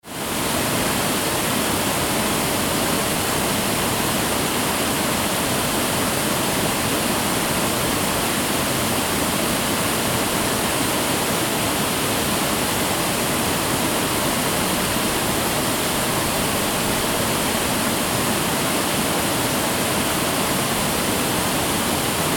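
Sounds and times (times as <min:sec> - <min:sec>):
waterfall on Rallarvegen: 0:00.0 - 0:22.3.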